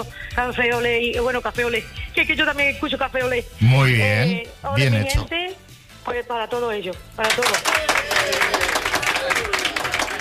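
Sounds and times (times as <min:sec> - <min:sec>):
speech: 0:00.0 - 0:08.7
audience applause: 0:07.3 - 0:10.1.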